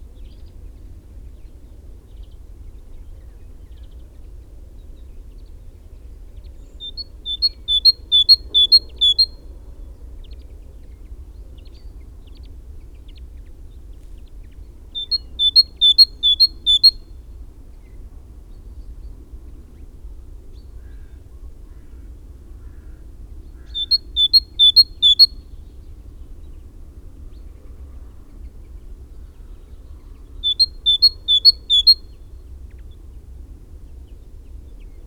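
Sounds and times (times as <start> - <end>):
great tit singing: 6.8 - 9.4, 15.0 - 17.0, 23.6 - 25.4, 30.2 - 32.1.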